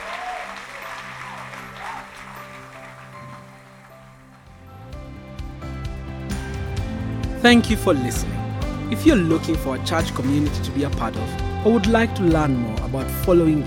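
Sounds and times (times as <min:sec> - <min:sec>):
audience clapping hands: 0:00.0 - 0:04.8
speech: 0:07.4 - 0:13.6.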